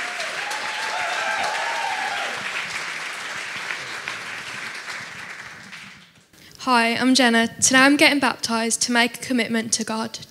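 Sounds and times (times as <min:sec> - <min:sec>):
audience applause: 0:00.0 - 0:06.2
speech: 0:06.6 - 0:10.2.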